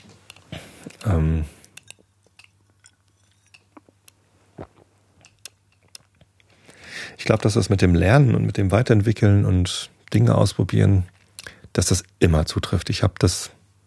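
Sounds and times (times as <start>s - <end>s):
person drinking a sip of water: 0.4s - 6.1s
speech: 1.0s - 1.6s, 7.3s - 11.2s, 11.8s - 13.6s.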